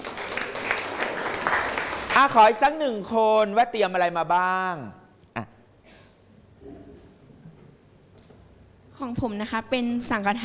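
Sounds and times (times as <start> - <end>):
classmates applauding: 0.0 - 2.7
speech: 2.2 - 5.0, 9.0 - 10.4.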